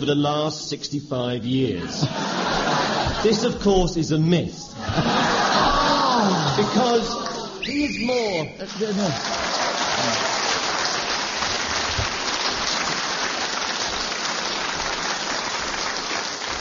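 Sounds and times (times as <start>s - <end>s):
speech: 0.0s - 5.3s, 6.2s - 10.3s
laughter: 1.8s - 3.9s, 4.7s - 7.6s, 8.6s - 10.8s
audience applause: 4.9s - 7.6s, 8.7s - 16.5s
whistle: 7.6s - 8.6s.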